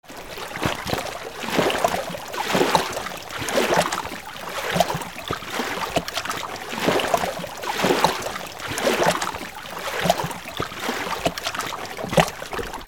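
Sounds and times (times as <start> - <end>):
water: 0.0 - 12.8.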